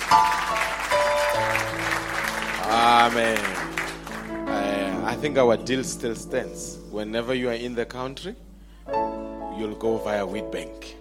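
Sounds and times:
crowd applause: 0.0s - 4.6s
speech: 3.0s - 3.6s, 5.2s - 9.0s, 9.6s - 10.9s.

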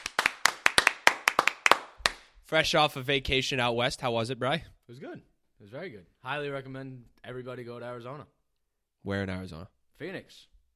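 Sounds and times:
audience applauding: 0.0s - 2.2s
speech: 2.5s - 8.4s, 9.0s - 10.5s.

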